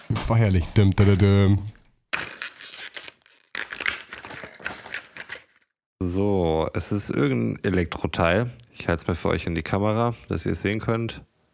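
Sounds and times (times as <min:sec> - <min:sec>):
speech: 0:00.1 - 0:01.8, 0:06.2 - 0:11.3
advent calendar door being opened, cardboard tearing: 0:02.2 - 0:05.6.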